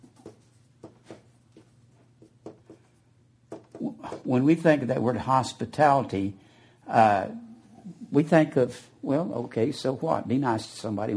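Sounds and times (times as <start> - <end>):
scratchy strokes of words being written by hand: 0.0 - 4.3
speech: 3.8 - 7.5, 8.1 - 11.1.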